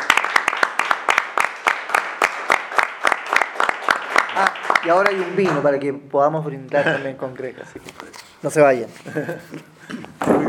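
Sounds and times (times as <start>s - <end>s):
audience applause from a small crowd: 0.0s - 5.7s
speech: 4.4s - 10.4s
laughter: 6.7s - 8.1s, 8.8s - 10.1s.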